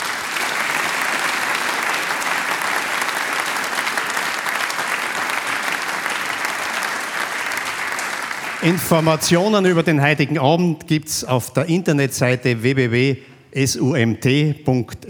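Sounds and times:
audience applause: 0.0 - 9.9
speech: 8.6 - 15.0.

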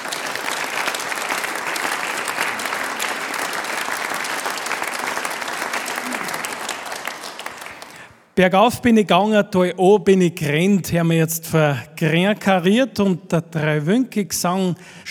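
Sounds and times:
audience applause: 0.0 - 8.2
speech: 8.4 - 15.0.

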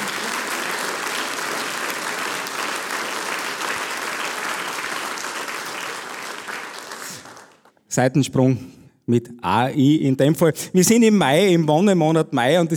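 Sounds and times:
audience applause: 0.0 - 7.7
speech: 7.9 - 12.7.

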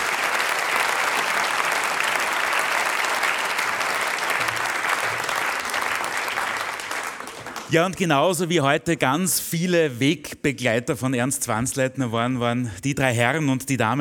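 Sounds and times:
crowd applause: 0.0 - 8.0
speech: 7.7 - 13.9.

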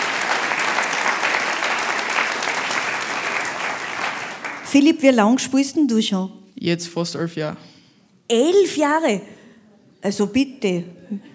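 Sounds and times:
audience applause: 0.0 - 4.7
speech: 4.7 - 7.7, 8.3 - 9.4, 10.0 - 11.3.

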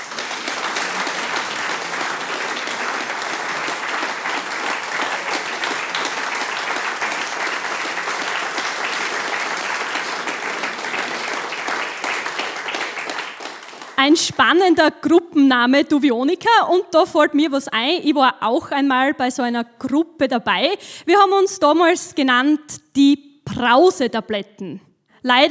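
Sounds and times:
audience applause: 0.0 - 14.0
speech: 14.1 - 25.5.

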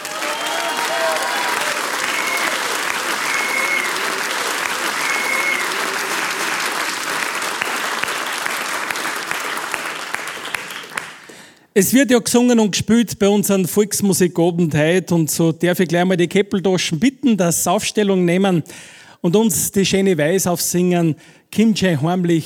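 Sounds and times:
audience applause: 0.0 - 11.6
speech: 11.8 - 22.4.

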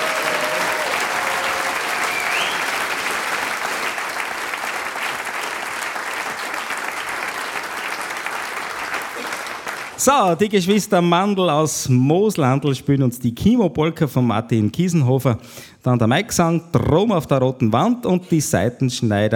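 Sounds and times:
audience applause: 0.0 - 10.2
speech: 10.0 - 19.3.

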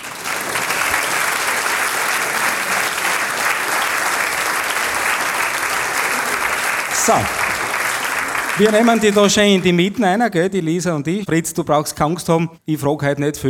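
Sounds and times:
audience applause: 0.0 - 10.0
speech: 7.1 - 7.5, 8.6 - 13.4.

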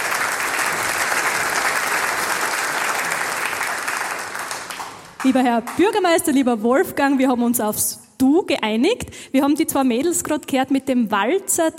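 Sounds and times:
audience applause: 0.0 - 5.8
speech: 5.2 - 11.7.

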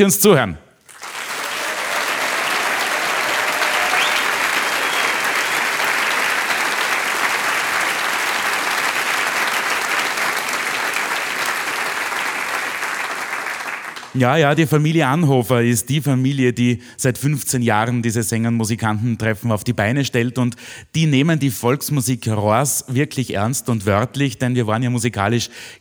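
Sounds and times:
speech: 0.0 - 0.6, 14.2 - 25.7
audience applause: 0.8 - 14.2.

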